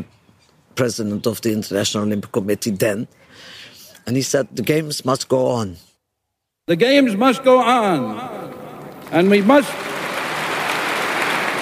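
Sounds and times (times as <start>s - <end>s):
speech: 0.8s - 5.9s, 6.7s - 9.9s
stadium crowd applauding: 8.8s - 11.5s.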